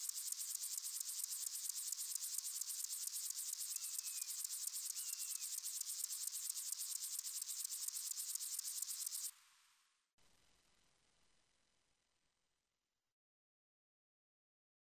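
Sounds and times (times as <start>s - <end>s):
sun grasshopper: 0.0s - 9.4s.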